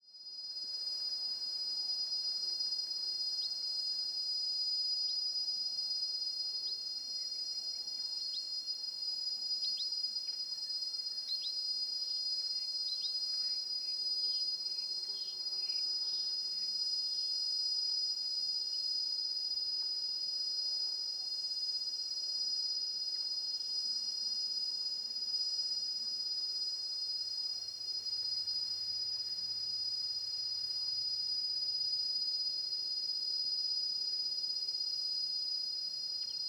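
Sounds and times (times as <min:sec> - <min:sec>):
insects droning high whine: 0:00.2 - 0:36.4.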